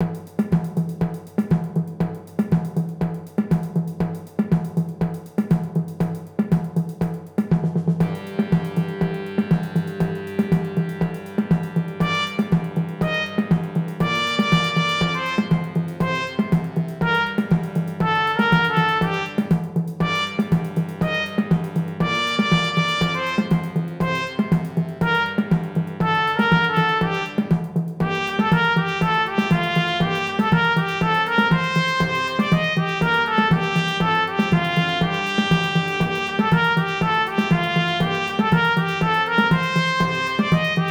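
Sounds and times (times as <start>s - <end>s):
samba music: 0.0s - 40.9s
trumpet: 8.0s - 40.9s.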